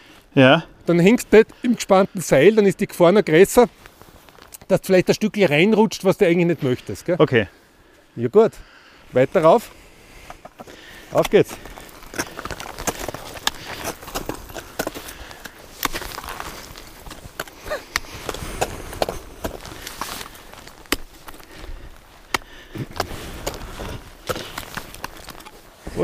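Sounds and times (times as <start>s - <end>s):
speech: 0.4s - 4.0s, 4.7s - 7.6s, 8.2s - 9.8s, 10.6s - 12.3s
climbing gear rustling: 9.4s - 26.0s
ice axe striking soft ice while ice climbing at the Silvretta-Bielerhöhe: 10.3s - 25.6s.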